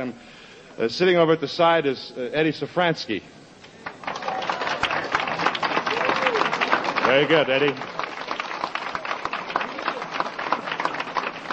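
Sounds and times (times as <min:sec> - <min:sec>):
speech: 0:00.0 - 0:03.4, 0:07.1 - 0:08.0
audience applause: 0:03.8 - 0:11.5.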